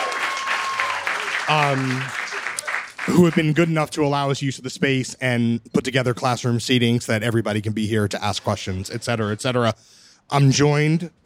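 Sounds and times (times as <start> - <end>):
audience clapping at a talk: 0.0 - 3.8
speech: 1.5 - 2.2, 3.1 - 11.2.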